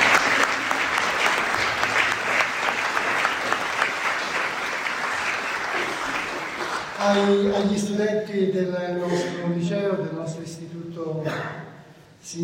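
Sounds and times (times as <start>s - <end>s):
applause: 0.0s - 7.7s
speech: 7.1s - 11.6s, 12.2s - 12.4s.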